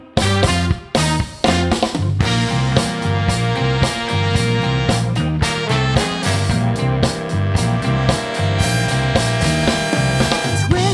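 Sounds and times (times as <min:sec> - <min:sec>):
soul orchestra music: 0:00.3 - 0:10.9.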